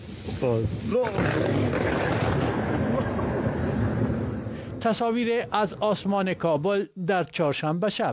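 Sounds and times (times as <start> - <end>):
speech: 0.4 - 2.5, 4.8 - 8.1
thunder from a lightning strike in Herat province: 1.0 - 5.0.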